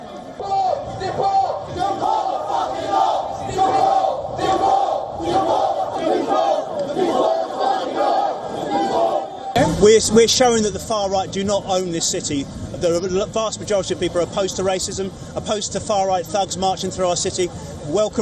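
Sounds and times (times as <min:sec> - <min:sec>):
counter-protest crowd of about 300 chanting a slogan: 0:00.0 - 0:09.6
speech: 0:09.8 - 0:18.2.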